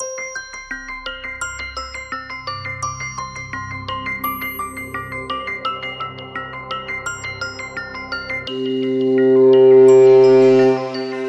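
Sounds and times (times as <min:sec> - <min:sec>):
ambient music: 0:03.2 - 0:11.2.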